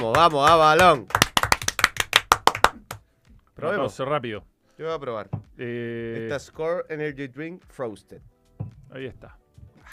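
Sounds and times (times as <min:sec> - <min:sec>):
clapping: 0:00.0 - 0:03.0
speech: 0:00.1 - 0:01.2, 0:03.6 - 0:09.9.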